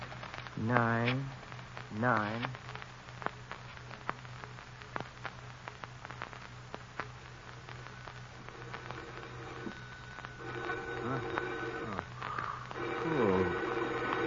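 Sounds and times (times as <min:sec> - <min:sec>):
steady low hum and crackle: 0:00.0 - 0:14.2
person speaking: 0:00.6 - 0:02.6, 0:11.0 - 0:12.2, 0:12.8 - 0:14.2
telephone ringing: 0:08.5 - 0:12.2, 0:12.8 - 0:14.2.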